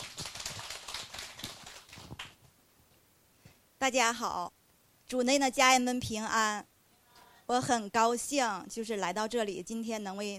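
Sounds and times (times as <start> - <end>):
audience applauding welcoming a speaker: 0.0 - 2.4
speech: 3.8 - 6.7, 7.5 - 10.3.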